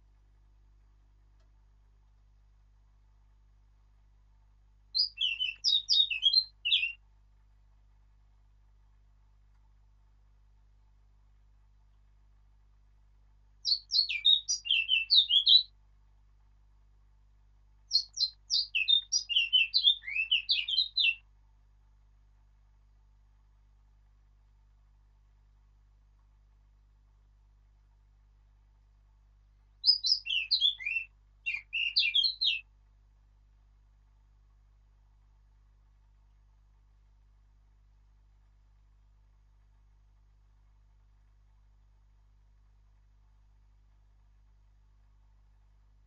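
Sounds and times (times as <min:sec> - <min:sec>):
Eurasian blackcap singing: 0:05.0 - 0:07.0, 0:13.6 - 0:15.7, 0:17.9 - 0:21.2, 0:29.8 - 0:32.6.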